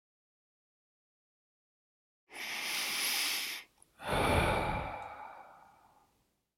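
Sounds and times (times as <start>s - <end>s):
deep breathing: 2.3s - 6.2s.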